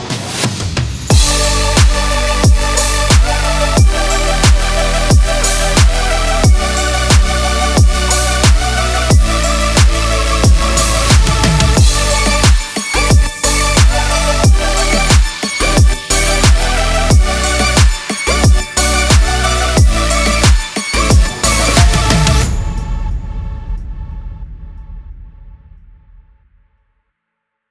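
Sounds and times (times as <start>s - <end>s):
epic Serum synth leads: 1.1s - 22.5s.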